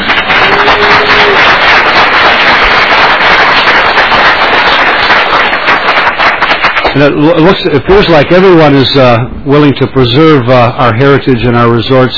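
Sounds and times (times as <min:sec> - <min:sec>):
audience applause for visiting students: 0:00.0 - 0:07.4
speech: 0:07.0 - 0:12.1.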